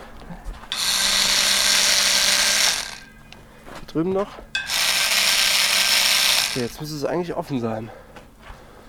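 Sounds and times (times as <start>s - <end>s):
power drill whining: 0.7s - 3.1s, 4.7s - 6.8s
speech: 3.9s - 4.6s, 6.6s - 8.1s.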